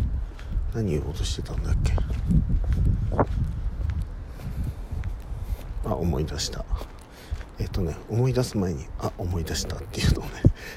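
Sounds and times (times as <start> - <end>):
footsteps on a short walk: 0.0 - 10.7
speech: 0.7 - 3.6, 5.9 - 6.9, 7.6 - 10.7.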